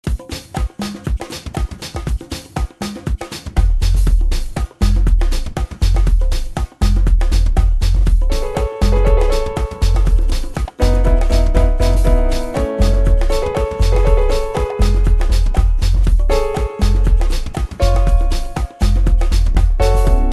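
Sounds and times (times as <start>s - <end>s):
contemporary urban pop ragga house music: 0.0s - 20.3s.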